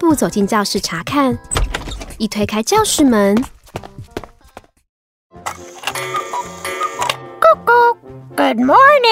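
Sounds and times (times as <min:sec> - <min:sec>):
speech: 0:00.1 - 0:01.6, 0:02.2 - 0:03.6, 0:08.5 - 0:09.1
wall cuckoo clock chiming and speaking: 0:05.5 - 0:07.5.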